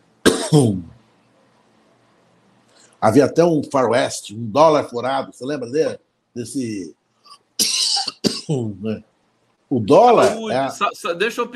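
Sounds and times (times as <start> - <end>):
person coughing: 0.3 - 0.9, 7.3 - 9.0
speech: 0.5 - 0.9, 3.0 - 7.0, 8.5 - 9.1, 9.7 - 11.5.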